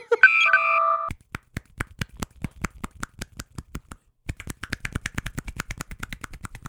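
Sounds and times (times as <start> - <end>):
short electronic beeps: 0.2 - 1.1
two hands clapping individually: 1.1 - 6.6.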